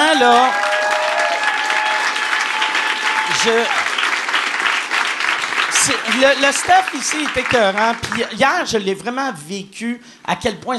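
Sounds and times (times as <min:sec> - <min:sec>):
audience applause: 0:00.0 - 0:08.4
speech: 0:00.2 - 0:00.6, 0:03.4 - 0:03.8, 0:05.8 - 0:10.7.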